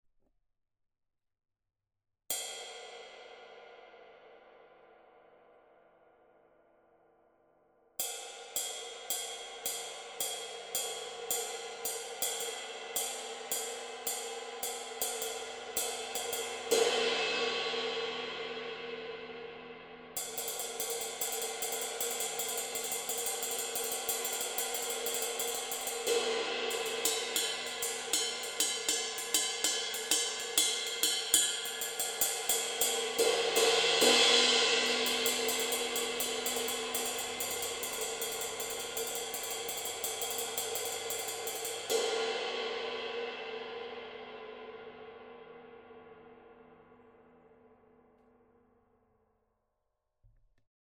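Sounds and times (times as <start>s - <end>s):
Zildjian K Dark Medium 22-inch ride cymbal: 8.0s - 45.8s.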